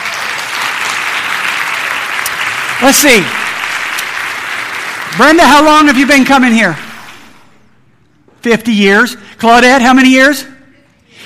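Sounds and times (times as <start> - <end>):
audience applause: 0.0 - 6.5
speech: 2.8 - 3.6, 5.1 - 6.8, 8.4 - 10.5.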